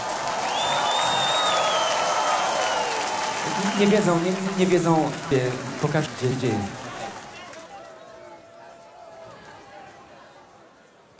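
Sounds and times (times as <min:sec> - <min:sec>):
audience applause: 0:00.0 - 0:10.2
whistle or whoop: 0:00.4 - 0:03.0
speech: 0:03.8 - 0:06.8.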